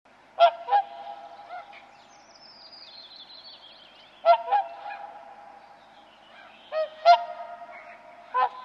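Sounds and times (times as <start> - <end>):
Whooper swan Cygnus cygnus trumpeting honks: 0.4 - 1.9, 4.2 - 5.4, 6.7 - 8.6.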